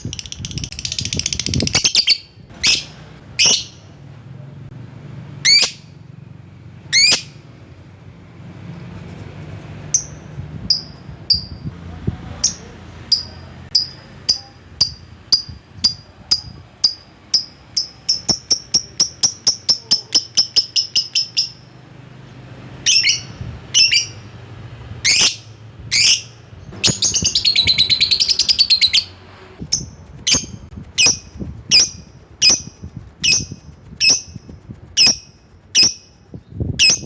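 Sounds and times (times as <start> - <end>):
lovebird ticking notes and harsh screeching chirps: 0.0 - 3.9, 5.4 - 5.9, 6.9 - 7.4, 12.5 - 21.7, 22.8 - 24.3, 25.0 - 37.0.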